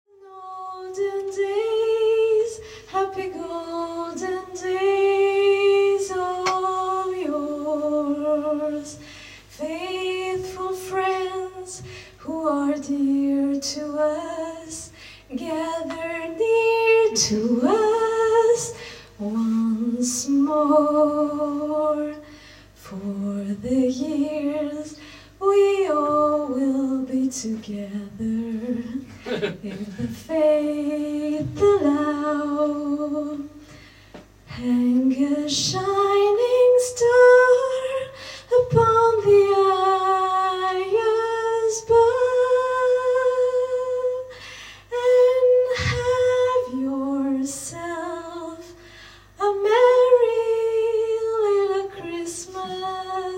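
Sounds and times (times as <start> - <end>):
a cappella Christmas song: 0.1 - 33.8, 34.5 - 53.3
laughter: 29.2 - 30.1.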